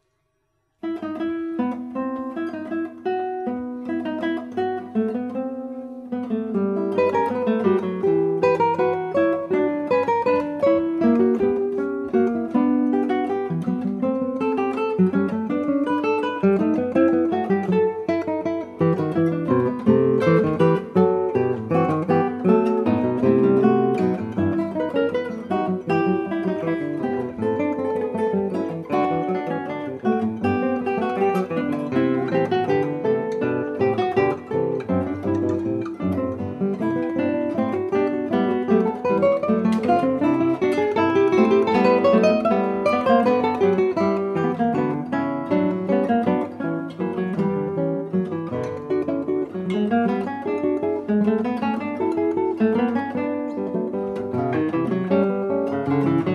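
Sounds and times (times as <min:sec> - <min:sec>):
guitar fugue: 0:00.8 - 0:56.3.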